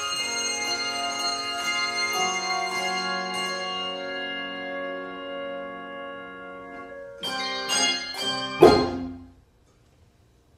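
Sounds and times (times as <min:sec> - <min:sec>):
handbells playing a fantasy in F minor: 0:00.0 - 0:05.3, 0:07.2 - 0:09.3.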